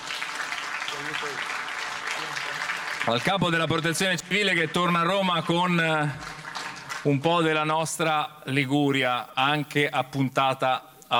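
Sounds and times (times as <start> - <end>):
quiet applause at a ceremony: 0.0 - 7.4
speech: 1.0 - 1.6, 2.2 - 6.4, 7.0 - 11.1.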